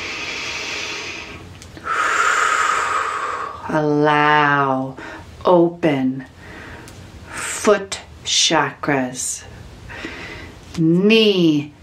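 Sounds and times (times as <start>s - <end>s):
deep breath during a healing meditation: 0.0s - 3.7s, 6.4s - 7.4s, 9.8s - 10.6s
speech: 3.7s - 6.4s, 7.6s - 10.2s, 10.8s - 11.8s.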